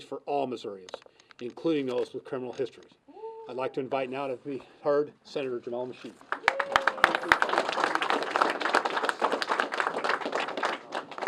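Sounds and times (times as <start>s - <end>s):
speech: 0.0s - 6.3s
crowd applauding: 6.3s - 11.2s.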